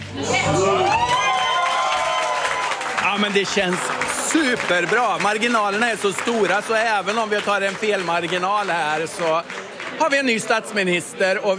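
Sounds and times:
crowd cheering and whooping at a Social Democrats election night party in Sweden: 0:00.0 - 0:05.2
speech: 0:03.2 - 0:11.5.

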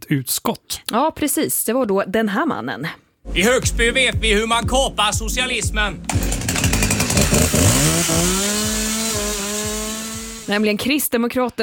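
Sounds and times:
speech: 0:00.1 - 0:06.3, 0:08.0 - 0:08.5, 0:10.5 - 0:11.6
chainsaw running: 0:06.1 - 0:10.8.

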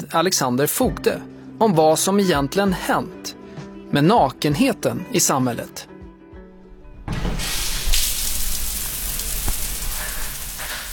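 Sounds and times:
speech: 0:00.0 - 0:05.9
running water rushing in an indoor swimming pool hall: 0:07.3 - 0:10.9.

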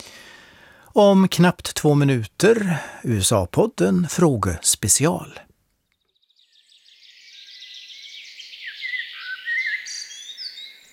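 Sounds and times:
speech: 0:01.0 - 0:05.5
high-pitched birdsong: 0:05.6 - 0:10.9.

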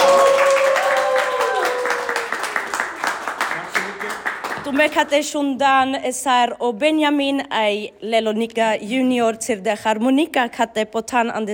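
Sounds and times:
audience applause after a concert: 0:00.0 - 0:04.7
speech: 0:04.8 - 0:11.5.

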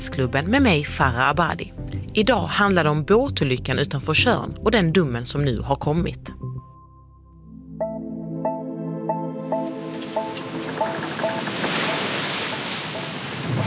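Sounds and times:
speech: 0:00.0 - 0:06.5
ocean waves: 0:09.4 - 0:13.6.

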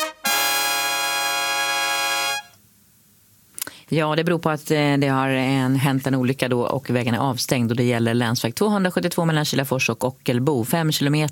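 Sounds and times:
traffic alert trumpet jingle: 0:00.0 - 0:02.6
speech: 0:03.9 - 0:11.3.

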